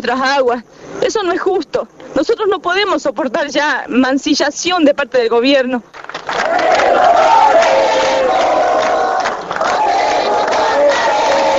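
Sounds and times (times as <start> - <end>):
speech: 0.0 - 6.1
dense crowd shouting and crying out desperately: 6.3 - 11.5.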